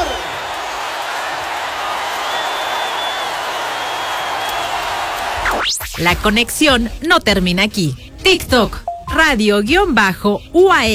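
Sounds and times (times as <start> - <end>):
audience applause for a mariachi band: 0.0 - 5.7
speech: 5.6 - 10.9.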